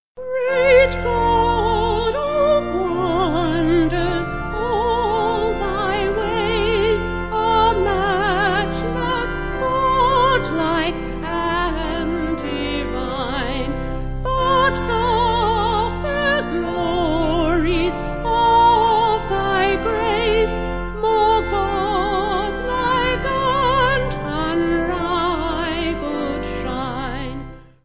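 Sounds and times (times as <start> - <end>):
organ: 0.2 - 27.8
vocals: 0.2 - 27.8.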